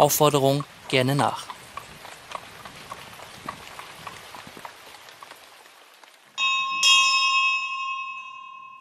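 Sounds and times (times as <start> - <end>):
speech: 0.0 - 1.5
steady rain pattering: 0.0 - 8.0
hooves clopping: 0.0 - 8.1
doorbell ringing in two bright chimes: 6.4 - 8.7.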